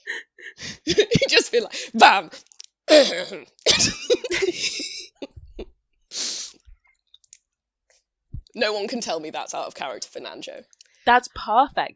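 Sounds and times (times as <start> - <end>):
laughter: 0.0 - 2.1, 3.7 - 5.6
speech: 0.9 - 4.8, 8.6 - 11.9
person politely clearing their throat: 2.9 - 5.2.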